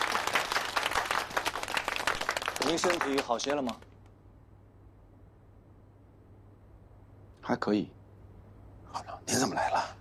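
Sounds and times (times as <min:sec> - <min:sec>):
room full of people applauding: 0:00.0 - 0:04.0
speech: 0:02.7 - 0:03.9, 0:07.5 - 0:08.0, 0:08.9 - 0:09.9.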